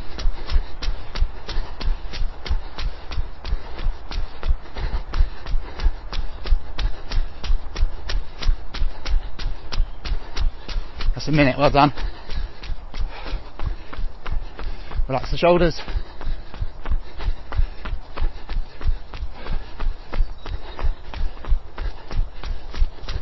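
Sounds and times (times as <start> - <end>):
constant noise: 0.0 - 23.2
running footsteps: 0.0 - 23.2
speech: 11.2 - 12.1, 15.1 - 16.0.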